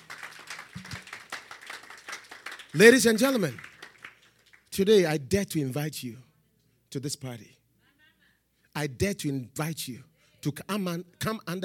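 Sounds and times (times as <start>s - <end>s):
congregation clapping during a church service: 0.0s - 5.1s
speech: 2.7s - 3.7s, 4.8s - 6.3s, 6.9s - 7.6s, 8.8s - 11.6s.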